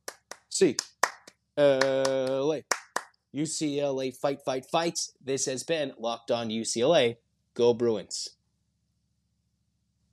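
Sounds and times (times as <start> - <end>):
rhythmic hand claps: 0.0 - 3.1
speech: 0.6 - 1.0, 1.6 - 8.4.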